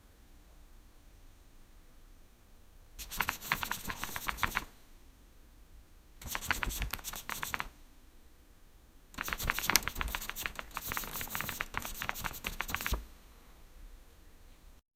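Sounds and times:
book flying in a circle: 3.0s - 4.7s, 6.2s - 7.7s, 9.2s - 13.0s.

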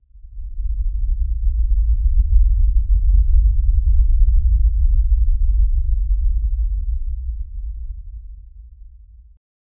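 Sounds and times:
low rumble: 0.0s - 9.4s.

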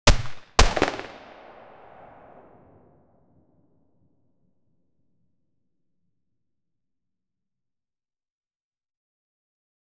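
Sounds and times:
single SP5A3 9mm gunshot: 0.0s - 2.7s.

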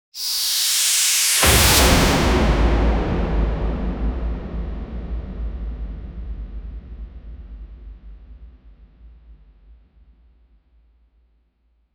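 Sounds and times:
energy surge building up: 0.2s - 4.1s.

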